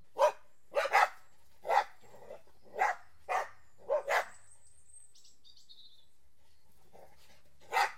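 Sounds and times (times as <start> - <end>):
dog barking: 0.1 - 2.0, 2.7 - 4.4, 7.0 - 7.9.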